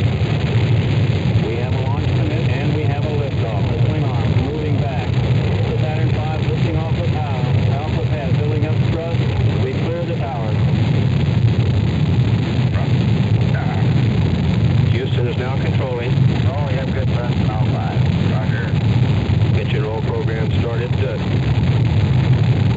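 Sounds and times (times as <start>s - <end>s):
rocket engines igniting and building toward 7.7 million pounds of thrust: 0.0s - 22.7s
man speaking: 1.4s - 10.6s, 14.9s - 18.8s, 19.6s - 21.2s.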